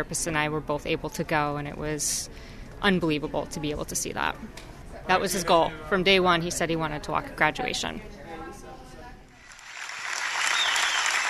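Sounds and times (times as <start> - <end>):
speech: 0.0 - 8.2
audience applause at MedStar National Rehab's annual gala: 9.4 - 11.2.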